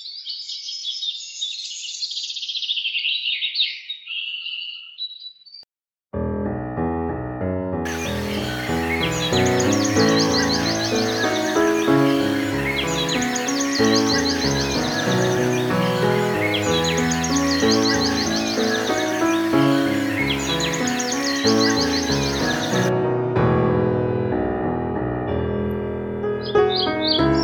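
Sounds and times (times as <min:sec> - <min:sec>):
birdsong in harmony with piano: 0:00.0 - 0:05.6, 0:07.9 - 0:22.9, 0:26.3 - 0:27.4
piano playing: 0:06.2 - 0:27.4.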